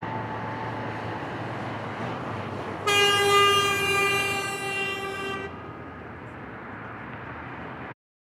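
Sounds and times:
road traffic: 0.0 - 8.0
short car horn: 2.9 - 5.6.

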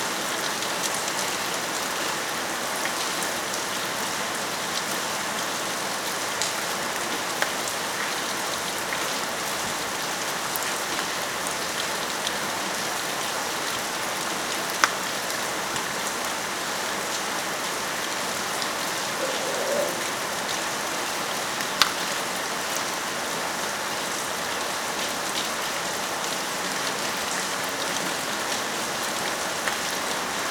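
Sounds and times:
rain: 0.0 - 30.4.

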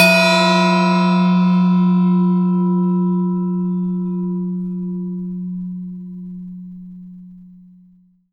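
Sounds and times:
clang: 0.0 - 6.6.

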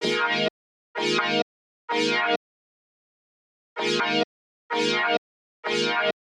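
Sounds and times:
retro synthesizer: 0.0 - 2.4, 3.8 - 6.2.

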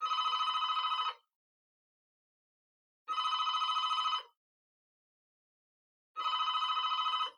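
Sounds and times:
cordless phone ringing: 0.0 - 1.2, 3.1 - 4.4, 6.2 - 7.3.

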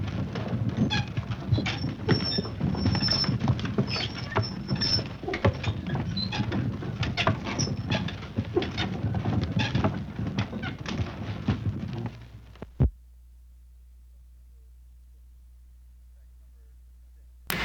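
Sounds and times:
ox cart: 0.0 - 12.6.

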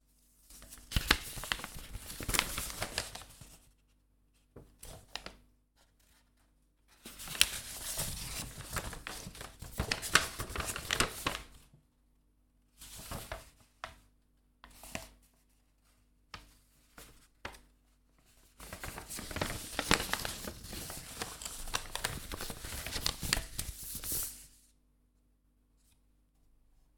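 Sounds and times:
paper handled in hands: 0.4 - 3.8, 4.4 - 11.6, 12.8 - 14.0, 14.6 - 24.7.

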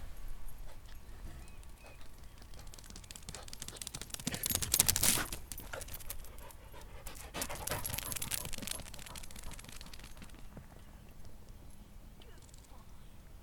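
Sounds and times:
dog running: 0.7 - 11.4.

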